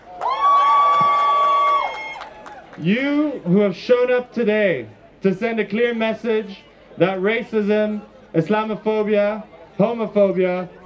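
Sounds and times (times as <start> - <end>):
crowd cheering at a demonstration against racism and fascism in Amsterdam: 0.0 - 3.4
long steady high-pitched whoop: 0.2 - 2.3
speech: 2.8 - 10.8.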